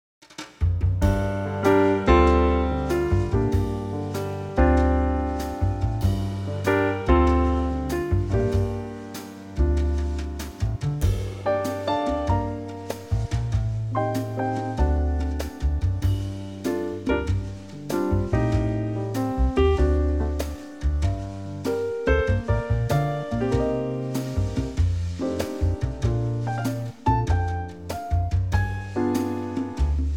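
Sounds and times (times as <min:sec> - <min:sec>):
swing trio backing track in G minor: 0:00.3 - 0:30.1.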